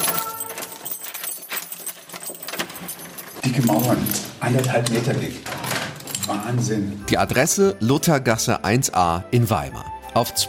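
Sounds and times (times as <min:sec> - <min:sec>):
keys unlocking a door: 0:00.0 - 0:06.9
speech: 0:03.4 - 0:05.6, 0:06.4 - 0:10.4.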